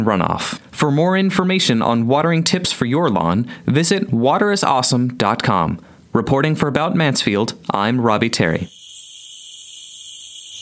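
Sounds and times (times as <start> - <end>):
speech: 0.0 - 8.8
male cicada chirping in Texas: 8.6 - 10.5.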